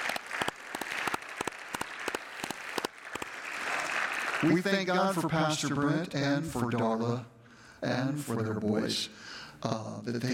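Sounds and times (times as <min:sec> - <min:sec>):
crowd applause: 0:00.0 - 0:05.3
speech: 0:04.4 - 0:10.3.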